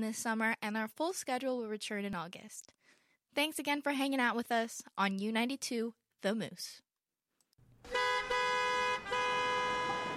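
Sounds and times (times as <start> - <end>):
speech: 0.0 - 2.8, 3.4 - 6.8
idling traffic rumble: 7.6 - 10.1
car horns honking in traffic: 7.8 - 10.1.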